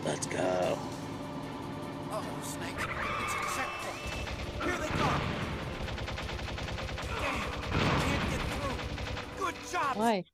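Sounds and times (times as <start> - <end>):
speech: 0.1 - 1.0, 2.2 - 5.4, 9.5 - 10.3
gunfire in video game Metal Gear Solid: 3.8 - 10.1.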